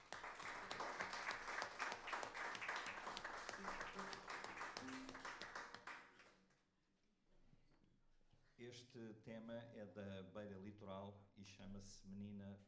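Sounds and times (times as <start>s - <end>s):
audience applause: 0.0s - 6.3s
speech: 8.7s - 12.6s.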